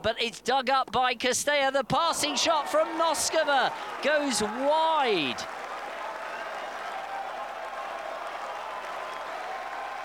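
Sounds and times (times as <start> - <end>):
speech: 0.0 - 5.6
tennis crowd applauding: 2.2 - 10.0.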